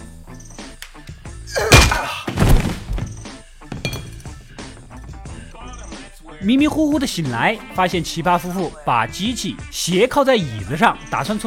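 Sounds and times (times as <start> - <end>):
bottle smashed over a man's head: 1.6 - 2.9
speech: 6.4 - 11.4.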